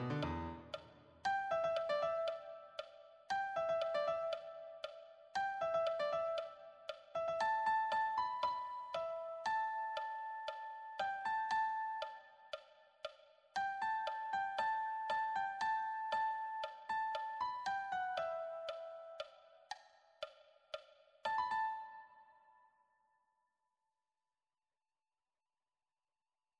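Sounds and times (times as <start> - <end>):
piano melody: 0.0 - 12.3, 13.6 - 19.3, 21.3 - 22.3.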